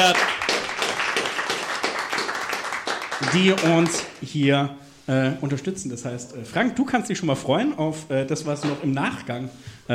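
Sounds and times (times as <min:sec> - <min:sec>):
speech: 0:00.0 - 0:00.3, 0:03.3 - 0:09.9
small applause: 0:00.0 - 0:04.2.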